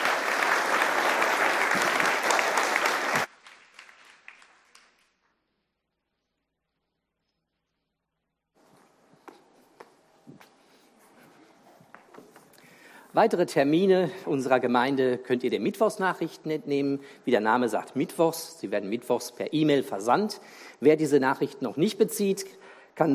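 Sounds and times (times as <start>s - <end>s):
loud audience applause: 0.0s - 5.1s
faint scattered taps and shuffling: 8.6s - 12.7s
speech: 13.2s - 23.1s.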